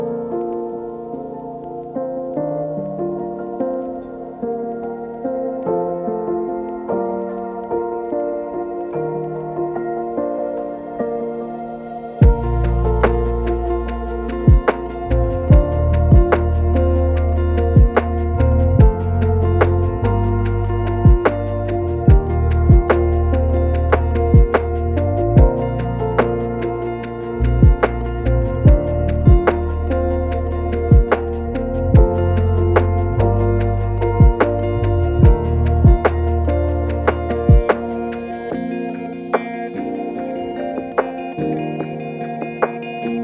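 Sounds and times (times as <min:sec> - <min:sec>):
lofi hip hop: 0:00.1 - 0:43.1.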